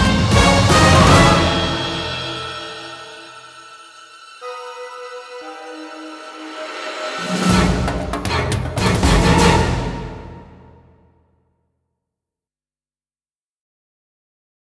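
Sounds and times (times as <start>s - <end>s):
lullaby music: 0.0s - 10.7s.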